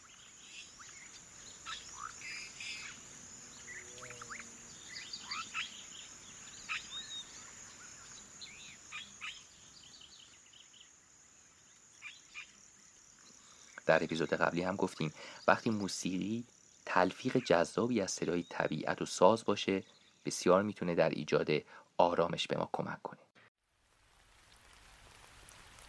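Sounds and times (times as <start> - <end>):
crickets chirping: 0.0 - 20.7
speech: 13.9 - 23.2.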